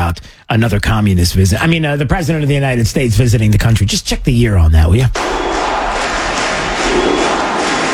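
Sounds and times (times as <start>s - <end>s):
speech: 0.5s - 5.6s
crowd at a baseball stadium in Cuba cheering for President Barack Obama: 5.2s - 7.9s.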